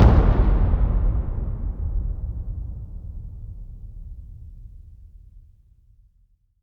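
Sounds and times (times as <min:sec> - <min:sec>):
taiko drum: 0:00.0 - 0:03.3.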